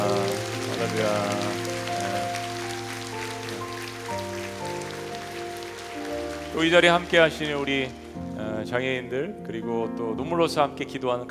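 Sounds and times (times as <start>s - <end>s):
audience applause: 0.0s - 8.3s
speech: 0.9s - 1.7s, 6.6s - 8.0s, 8.6s - 11.2s.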